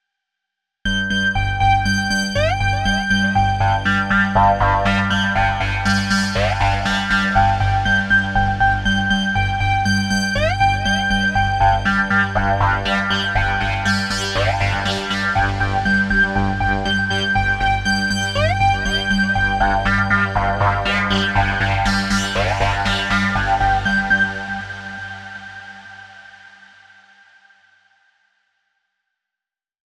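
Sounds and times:
Oberheim OB 1 synth arpeggio: 1.6s - 25.4s.

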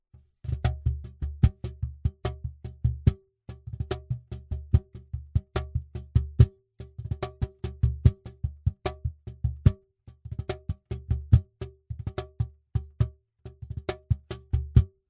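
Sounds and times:
processed cajon: 0.4s - 12.5s.

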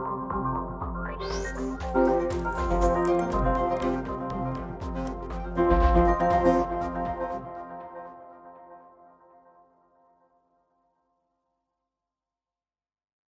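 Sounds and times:
synth sequence: 0.0s - 8.2s.

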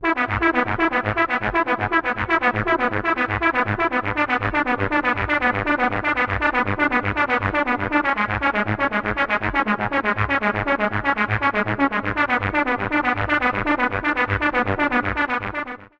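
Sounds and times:
Roland RS202 synthesizer sequence: 0.0s - 15.7s.

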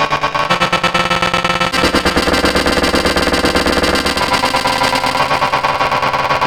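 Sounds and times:
granular synthesis with amp envelope: 0.2s - 6.3s.

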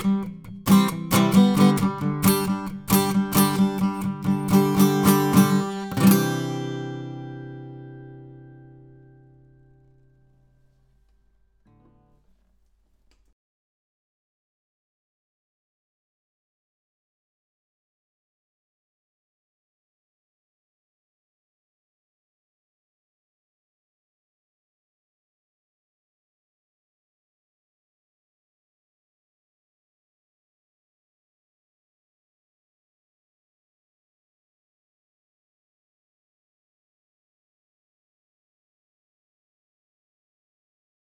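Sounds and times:
guitar: 0.0s - 12.4s.

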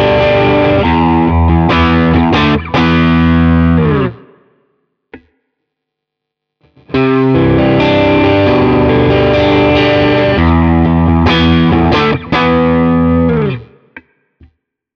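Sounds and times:
Hagström electric guitar mid gain riff: 0.0s - 4.4s, 6.7s - 13.8s.

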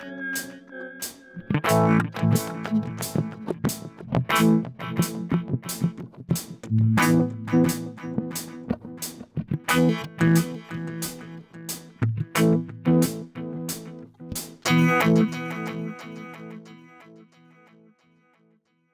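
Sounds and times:
filtered polyrhythms with delay: 0.0s - 14.7s.

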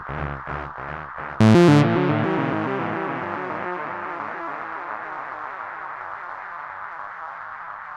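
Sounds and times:
modulated delay effect: 1.4s - 5.3s.

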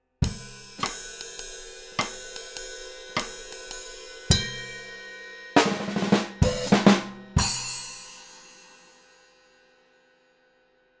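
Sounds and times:
funk drums recorded with XVive and Mikro NT1A: 0.2s - 5.0s, 5.6s - 8.2s.

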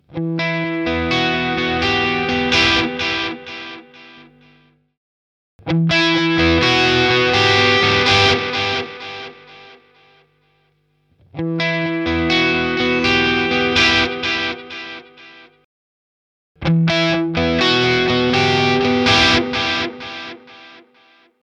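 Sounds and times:
pushed tape echo overdrive: 0.4s - 4.6s, 6.2s - 15.4s, 17.4s - 20.8s.

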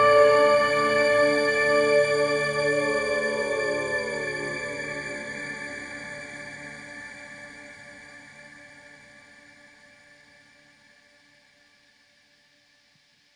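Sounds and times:
EQD Silos digital delay and shimmer reverb: 0.0s - 6.0s.

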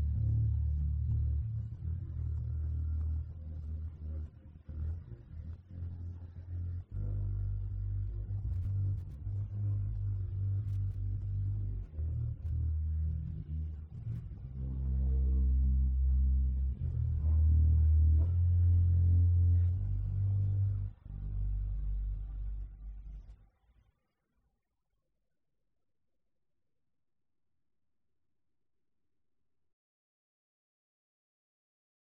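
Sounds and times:
bass: 0.0s - 23.6s.

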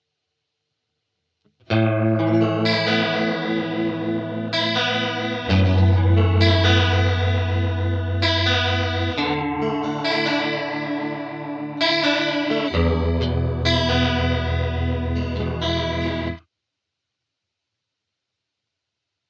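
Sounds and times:
indie chorus riff: 1.7s - 16.4s.

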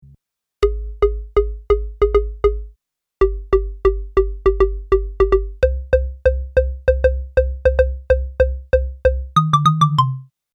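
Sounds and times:
wooden percussion: 0.6s - 10.2s.

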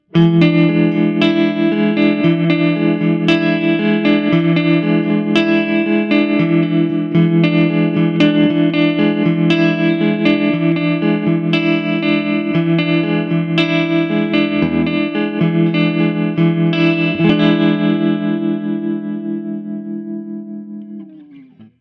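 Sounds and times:
guitar through Crazy Tube Circuits White Whale opto tremolo reverb pedal: 0.0s - 21.7s.

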